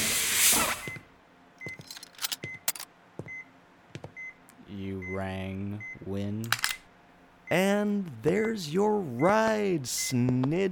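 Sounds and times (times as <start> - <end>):
quarantine doors sliding open with pneumatic hiss: 0.0 - 1.0
mechanical clicks and clunks: 1.7 - 2.9
speech: 4.8 - 6.7, 7.5 - 10.6.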